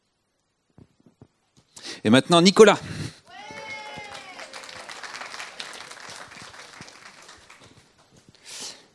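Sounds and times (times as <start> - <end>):
speech: 2.0 - 3.0
person whooping: 3.3 - 5.6
crowd clapping: 3.3 - 8.1.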